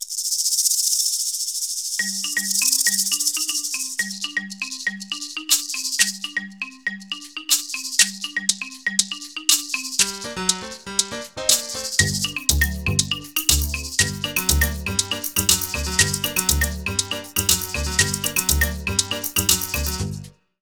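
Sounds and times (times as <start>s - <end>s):
maracas: 0.0s - 20.4s
demo drums: 9.5s - 20.3s.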